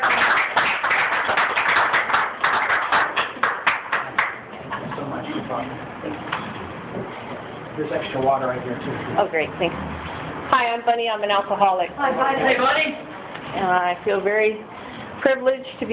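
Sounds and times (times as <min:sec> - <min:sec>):
small crowd clapping: 0:00.0 - 0:05.6
room murmur and voices: 0:00.0 - 0:15.9
speech: 0:07.9 - 0:09.9, 0:10.5 - 0:13.0, 0:13.6 - 0:14.6, 0:15.2 - 0:15.9.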